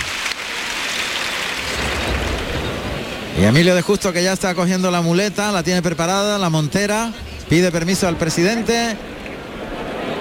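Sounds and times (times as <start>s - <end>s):
bullring crowd ovation for banderilleros: 0.0s - 2.6s
speech: 3.4s - 9.1s.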